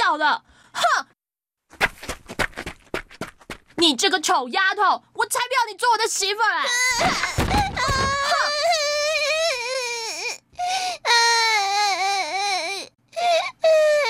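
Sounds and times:
speech: 0.1s - 1.1s, 3.8s - 8.8s
child crying after being hurt and bleeding: 6.6s - 14.0s.

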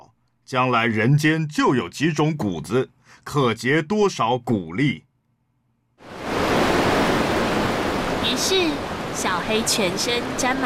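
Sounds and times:
speech: 0.5s - 5.1s, 8.3s - 10.6s
sea waves surging as an animal swims through the open sea: 6.0s - 10.6s.

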